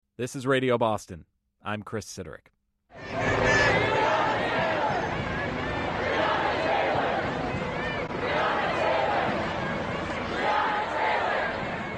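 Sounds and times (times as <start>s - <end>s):
speech: 0.2s - 2.5s
hundreds of protesters marching in Boston: 3.0s - 11.9s.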